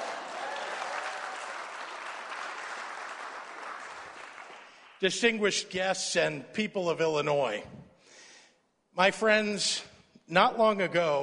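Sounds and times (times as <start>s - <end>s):
audience applause: 0.0s - 5.0s
speech: 5.0s - 7.8s, 9.0s - 11.2s.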